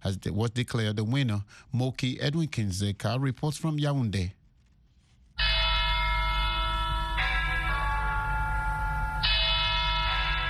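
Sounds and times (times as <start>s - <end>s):
speech: 0.1s - 4.4s
church bells ringing at Our Lady of Victory's Cathedral in Yaoundé: 5.4s - 10.4s.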